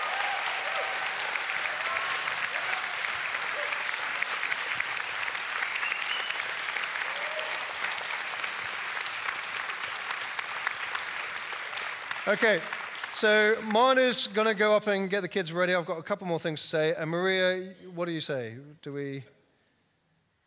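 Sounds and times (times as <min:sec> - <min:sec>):
audience applause: 0:00.0 - 0:14.0
speech: 0:12.3 - 0:19.4.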